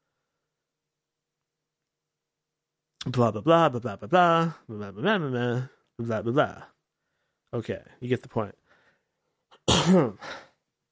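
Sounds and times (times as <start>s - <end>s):
speech: 3.0s - 6.7s, 7.5s - 8.6s, 9.7s - 10.5s
cough: 9.6s - 10.6s.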